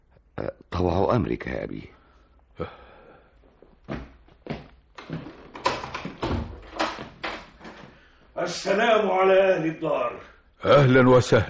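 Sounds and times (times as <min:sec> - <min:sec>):
speech: 0:00.4 - 0:02.0, 0:02.6 - 0:02.9, 0:08.4 - 0:11.4
door opening with clunks and rattles: 0:05.0 - 0:07.9.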